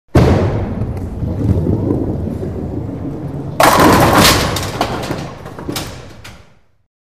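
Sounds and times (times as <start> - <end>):
bowling ball rolling: 0.1 - 6.8.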